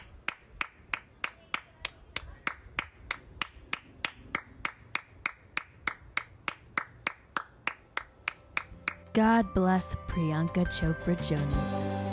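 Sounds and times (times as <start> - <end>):
woman clapping her hands: 0.0 - 9.1
speech: 9.2 - 12.0.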